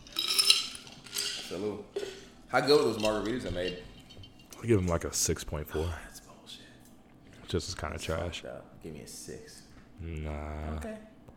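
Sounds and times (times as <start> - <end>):
ice clinking against glass: 0.0 - 1.5
speech: 1.5 - 3.9, 4.6 - 6.1, 7.5 - 11.1.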